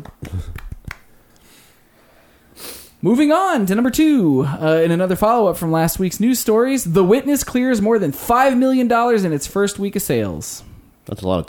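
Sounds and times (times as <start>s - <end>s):
golf clap: 0.0s - 1.2s
speech: 3.0s - 11.4s.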